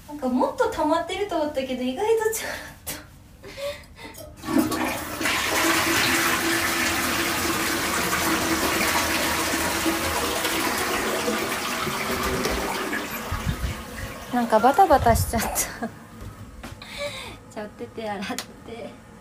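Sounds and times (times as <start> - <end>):
speech: 0.1 - 2.8, 14.4 - 16.0, 17.6 - 19.0
toilet flushing: 4.2 - 15.0.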